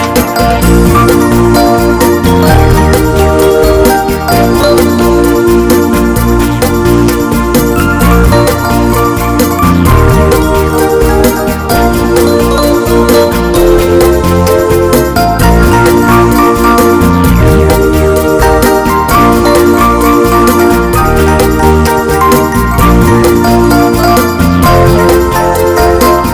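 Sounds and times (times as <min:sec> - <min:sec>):
cha cha remix music: 0:00.0 - 0:26.3.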